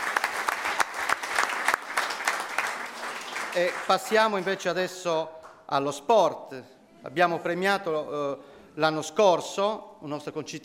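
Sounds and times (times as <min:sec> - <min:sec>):
audience applause: 0:00.0 - 0:04.5
speech: 0:03.6 - 0:10.6.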